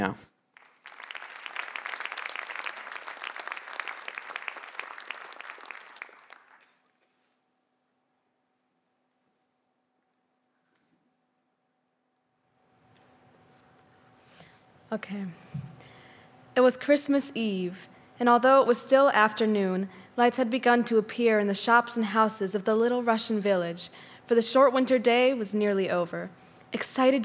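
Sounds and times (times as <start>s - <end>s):
speech: 0.0s - 0.3s, 14.9s - 15.6s, 16.6s - 27.2s
audience applause welcoming a reader at a Christmas story reading: 0.5s - 7.3s.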